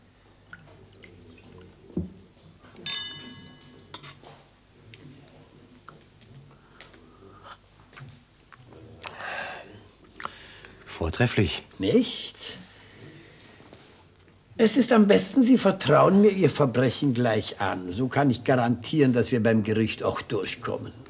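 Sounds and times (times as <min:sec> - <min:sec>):
glasses clinking together in a toast: 0:02.8 - 0:04.2
speech: 0:11.1 - 0:12.6, 0:14.6 - 0:21.0.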